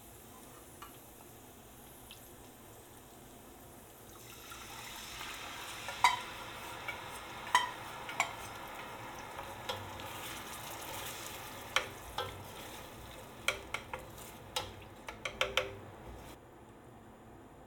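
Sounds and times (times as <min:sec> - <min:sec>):
homemade barbecue sauce for pork ribs simmering on cooked onion: 0:00.0 - 0:16.4
utensil clinking against the pan: 0:05.8 - 0:16.4.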